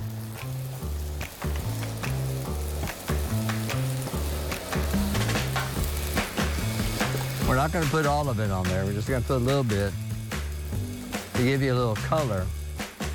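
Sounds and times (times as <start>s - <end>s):
green and red bell peppers, squash and onion sizzling on a grill: 0.0s - 13.1s
music with a steady stepping bass line: 0.0s - 13.1s
speech: 7.6s - 10.0s, 11.4s - 12.6s.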